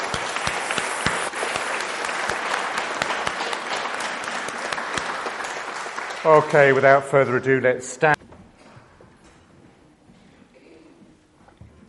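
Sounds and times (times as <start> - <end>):
audience applause: 0.0 - 7.5
speech: 6.2 - 8.2.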